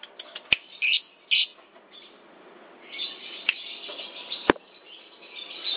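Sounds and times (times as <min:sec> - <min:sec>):
lovebird chirping: 0:00.5 - 0:02.2, 0:02.8 - 0:05.7.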